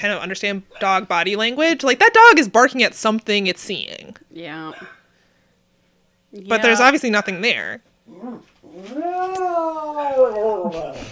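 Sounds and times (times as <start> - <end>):
speech: 0.0 - 5.0, 6.3 - 11.1
cat yowling: 8.1 - 11.0.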